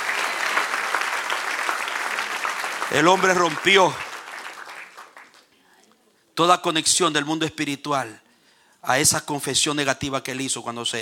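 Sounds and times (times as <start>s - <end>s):
church congregation applause during a service: 0.0s - 5.6s
speech: 2.9s - 4.0s, 6.4s - 8.2s, 8.8s - 11.0s.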